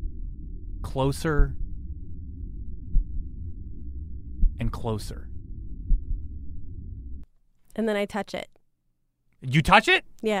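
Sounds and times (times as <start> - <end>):
low heartbeat: 0.0 - 7.2
speech: 0.9 - 1.6, 4.6 - 5.3, 7.8 - 8.5, 9.4 - 10.3.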